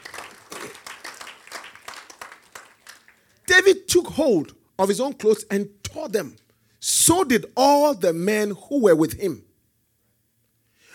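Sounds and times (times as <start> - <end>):
audience clapping: 0.0 - 3.8
speech: 3.7 - 9.5.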